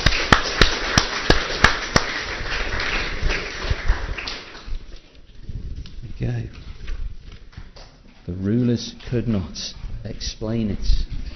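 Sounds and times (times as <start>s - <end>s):
audience clapping: 0.0s - 5.1s
speech: 8.3s - 11.1s.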